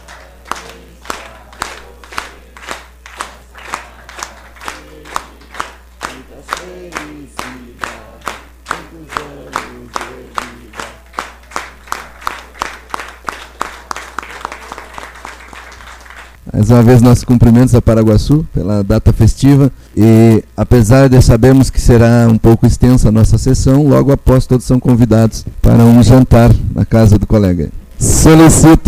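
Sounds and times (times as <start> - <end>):
group singing a birthday song for a colleague at a municipal council session: 0.0 - 16.2
people clapping along at a municipal council session: 0.0 - 16.4
speech: 16.6 - 28.8.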